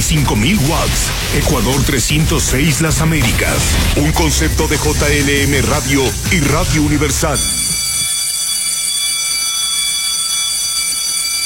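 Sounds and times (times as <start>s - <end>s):
speech: 0.1s - 7.6s
electric bell ringing: 7.0s - 11.4s.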